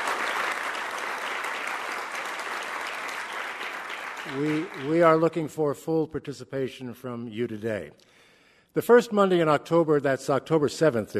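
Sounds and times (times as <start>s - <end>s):
audience applause: 0.0s - 5.4s
speech: 4.3s - 8.1s, 8.8s - 11.1s.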